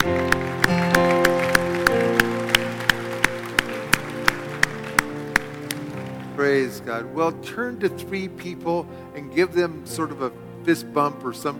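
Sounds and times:
audience clapping: 0:00.0 - 0:06.9
speech: 0:06.9 - 0:11.5.

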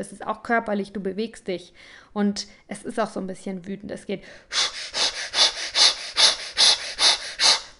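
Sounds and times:
speech: 0:00.0 - 0:04.9
person breathing forcefully in active meditation: 0:04.2 - 0:07.7.

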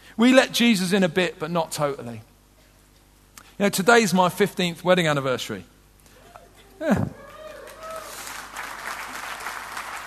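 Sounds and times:
speech: 0:00.2 - 0:02.3, 0:03.6 - 0:05.7, 0:06.8 - 0:07.2
audience clapping: 0:07.2 - 0:10.0.

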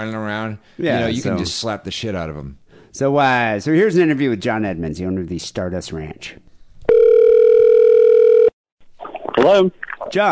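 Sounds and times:
speech: 0:00.0 - 0:06.5, 0:09.4 - 0:10.3
telephone ring tone on a call: 0:06.9 - 0:08.6.

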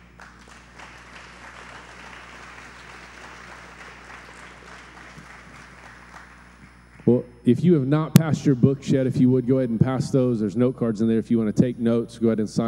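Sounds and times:
audience applauding: 0:00.0 - 0:07.2
speech: 0:07.1 - 0:12.6.

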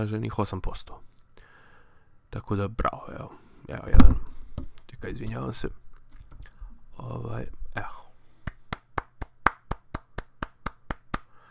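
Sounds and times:
speech: 0:00.0 - 0:01.1, 0:02.3 - 0:04.4, 0:05.0 - 0:05.8, 0:07.0 - 0:08.0
single person clapping: 0:08.5 - 0:11.3.

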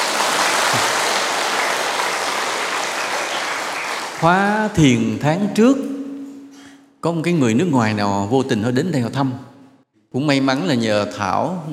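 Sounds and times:
meditation retreat audience applause: 0:00.0 - 0:04.4
speech: 0:00.7 - 0:01.0, 0:04.2 - 0:05.9, 0:07.0 - 0:09.5, 0:10.1 - 0:11.7.

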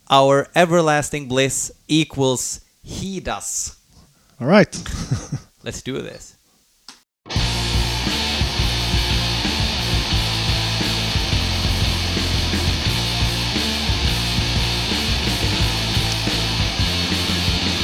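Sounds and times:
speech: 0:00.1 - 0:03.8, 0:04.4 - 0:06.4
laughter: 0:04.8 - 0:05.5
Norwegian black metal with a groove: 0:07.3 - 0:17.8.

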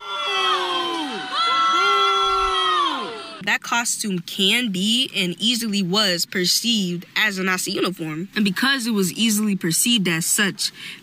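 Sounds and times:
students booing: 0:00.0 - 0:03.4
speech: 0:03.4 - 0:11.0.

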